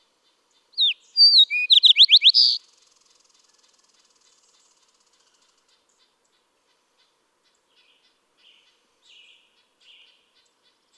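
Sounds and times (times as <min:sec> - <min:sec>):
Fox Sparrow singing: 0:00.8 - 0:02.6.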